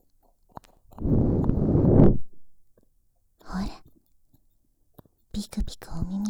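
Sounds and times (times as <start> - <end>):
breath blown softly into the ear: 1.0 - 2.3
speech: 5.4 - 6.1.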